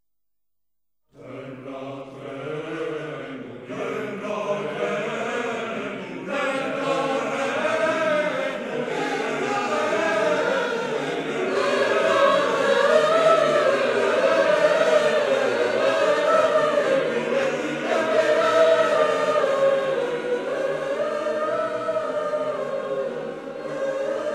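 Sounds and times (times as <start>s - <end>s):
chorus singing Gregorian polyphony: 1.1s - 24.3s.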